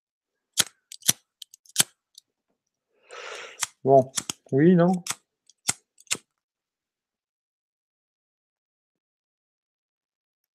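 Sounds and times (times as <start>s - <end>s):
lighter flame hiss: 3.1s - 4.4s
lighter being struck to light a cigarette: 3.5s - 6.2s
speech: 3.8s - 5.1s.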